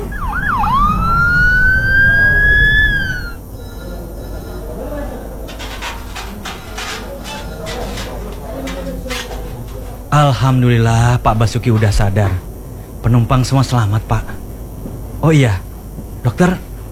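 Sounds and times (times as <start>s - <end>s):
ambulance siren: 0.0s - 4.7s
speech: 10.2s - 14.4s, 15.2s - 15.6s, 16.3s - 16.7s.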